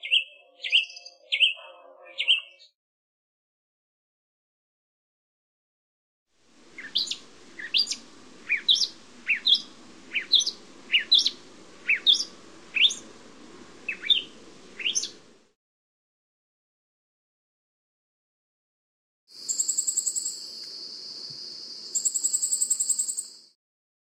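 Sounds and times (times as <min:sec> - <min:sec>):
birds in Costa Rica: 0:00.0 - 0:02.7, 0:06.6 - 0:15.4.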